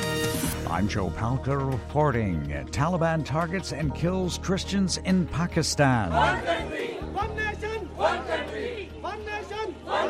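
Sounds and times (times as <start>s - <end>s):
speech: 0.7s - 7.4s
crowd chanting in English at a demonstration in Lahore, Pakistan: 6.0s - 10.0s.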